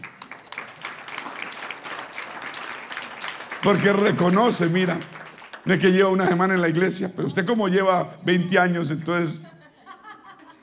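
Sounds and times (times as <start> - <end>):
audience applause: 0.0 - 7.0
speech: 3.6 - 9.5
laughter: 7.2 - 10.6.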